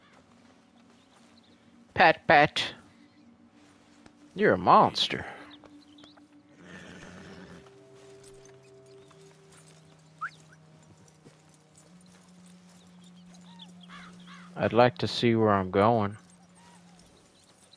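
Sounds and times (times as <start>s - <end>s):
horse hooves clip-clopping in Red Dead Redemption 2: 0.0s - 2.0s, 3.6s - 17.7s
sustained musical tones: 0.0s - 17.7s
speech: 2.0s - 2.8s, 4.4s - 5.4s, 14.6s - 16.2s
horse snorting in Red Dead Redemption 2: 6.6s - 7.6s.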